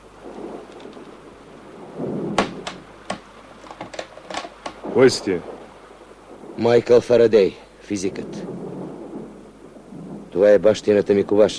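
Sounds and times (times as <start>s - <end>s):
low rumble of thunder: 0.0s - 11.5s
steady rain: 0.0s - 11.5s
knocking on a door in foul stormy weather: 2.4s - 4.0s
speech: 5.0s - 5.6s, 6.6s - 8.6s, 10.4s - 11.5s.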